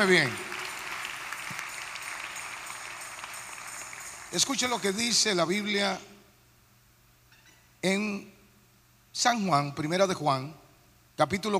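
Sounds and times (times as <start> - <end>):
speech: 0.0 - 0.5, 4.3 - 6.1, 7.8 - 8.3, 9.2 - 10.6, 11.2 - 11.5
audience applause: 0.0 - 5.3.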